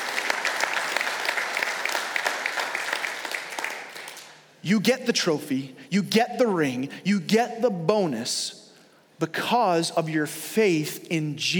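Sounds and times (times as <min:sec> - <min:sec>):
large crowd clapping: 0:00.0 - 0:04.4
speech: 0:04.6 - 0:08.6, 0:09.2 - 0:11.5.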